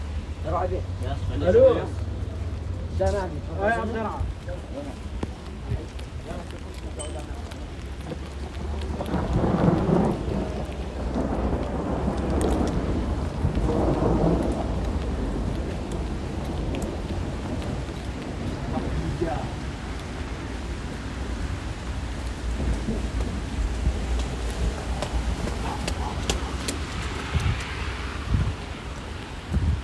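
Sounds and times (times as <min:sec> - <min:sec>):
rain at Coolhaven in Rotterdam: 0:00.0 - 0:29.8
thunder at Coolhaven in Rotterdam: 0:08.5 - 0:20.0, 0:22.3 - 0:28.6.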